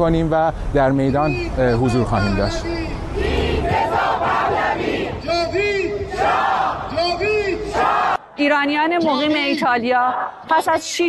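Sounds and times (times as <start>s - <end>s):
speech: 0.0s - 3.3s, 8.4s - 11.0s
Iranians in Italy shouting the names of killed protesters: 2.2s - 8.4s.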